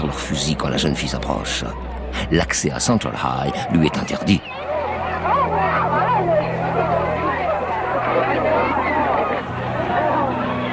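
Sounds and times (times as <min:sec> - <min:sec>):
speech: 0:00.1 - 0:04.7
hostile crowd yelling and jeering at Little Rock's Central High: 0:03.4 - 0:10.7.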